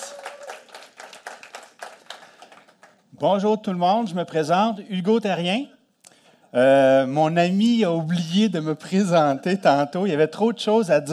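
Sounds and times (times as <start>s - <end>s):
audience clapping: 0.0s - 3.1s
speech: 3.2s - 5.8s, 6.5s - 11.1s.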